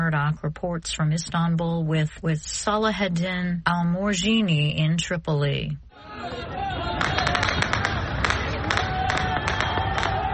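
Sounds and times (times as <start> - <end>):
speech: 0.0 - 7.0
protest crowd cheering and shouting: 5.9 - 10.3.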